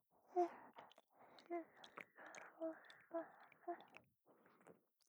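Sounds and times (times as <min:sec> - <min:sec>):
shallow ear licking in right ear: 0:00.4 - 0:04.1.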